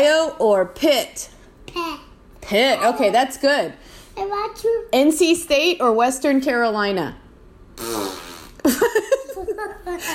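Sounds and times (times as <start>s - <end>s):
speech: 0.0s - 7.2s, 7.8s - 10.1s
vocal raspberry imitating a fart: 7.8s - 8.8s.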